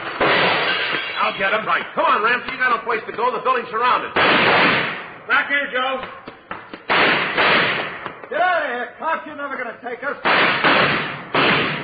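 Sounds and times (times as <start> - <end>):
gunfire in a radio drama shootout between police and gunmen: 0.2 - 1.1, 4.1 - 5.2, 6.8 - 8.2, 10.2 - 11.8
speech: 1.3 - 6.2, 8.3 - 11.0.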